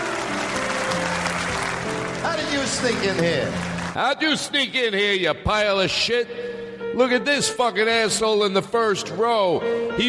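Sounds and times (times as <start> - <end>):
crowd applauding: 0.0 - 4.6
speech: 2.5 - 10.0.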